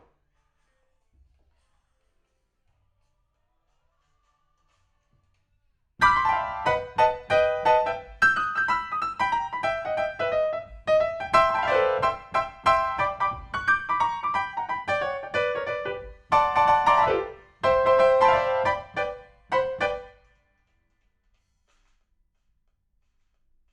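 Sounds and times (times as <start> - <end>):
rock and roll piano: 6.0 - 20.2.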